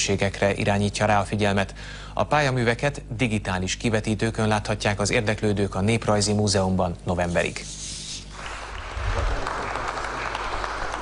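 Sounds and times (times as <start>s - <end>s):
speech: 0.0s - 7.9s
audience applause: 8.3s - 11.0s.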